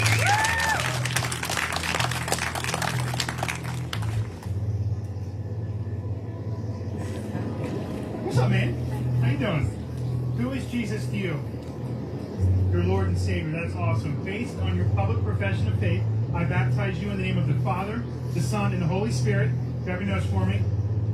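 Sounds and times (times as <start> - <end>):
audience applause: 0.0 - 4.5
low steady hum: 0.0 - 21.1
voices murmuring: 6.9 - 20.6
speech: 10.7 - 12.0, 12.8 - 20.7.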